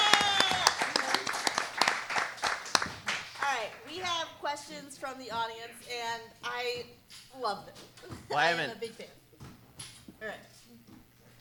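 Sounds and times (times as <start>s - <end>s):
audience applause at a live comedy show: 0.0s - 4.0s
speech: 4.5s - 9.2s, 10.2s - 10.5s.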